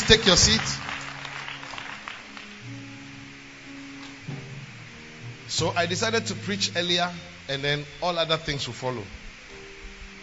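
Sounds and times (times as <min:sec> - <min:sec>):
audience clapping: 0:00.0 - 0:02.9
speech: 0:00.1 - 0:00.8, 0:05.6 - 0:09.2.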